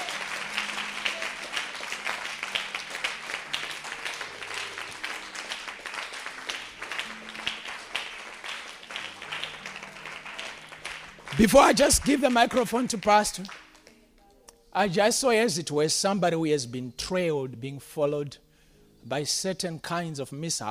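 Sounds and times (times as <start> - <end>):
audience applause: 0.0 - 13.7
speech: 11.4 - 13.6, 14.8 - 18.4, 19.0 - 20.6.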